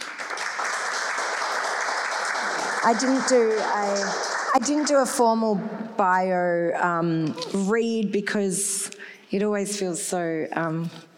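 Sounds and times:
audience applause welcoming three speakers at a talk on architecture: 0:00.0 - 0:05.2
speech: 0:02.8 - 0:11.1.

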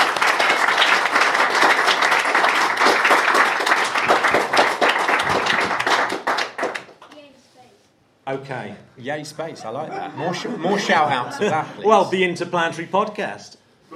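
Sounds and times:
audience round of applause: 0:00.0 - 0:07.0
speech: 0:08.4 - 0:13.9
laughter: 0:09.6 - 0:12.2.

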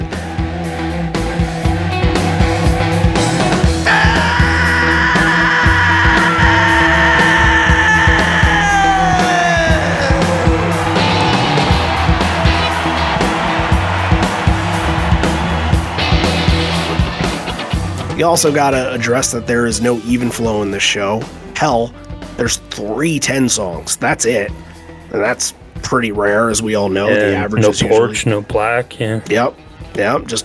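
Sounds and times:
crowd roar: 0:00.0 - 0:18.2
live music: 0:00.0 - 0:22.8
singer's massive howl: 0:03.8 - 0:13.6
speech: 0:18.2 - 0:30.4.

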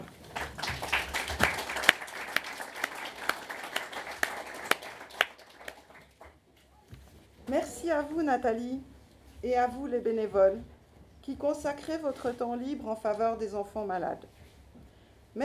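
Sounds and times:
room full of people clapping: 0:00.0 - 0:06.5
speech: 0:07.9 - 0:14.4.

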